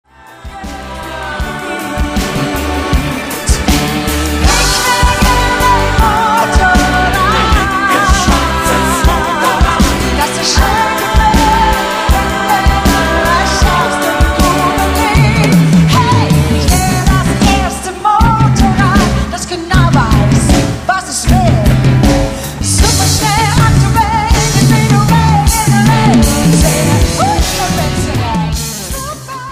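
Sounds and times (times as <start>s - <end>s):
live music performance: 0.1s - 29.4s.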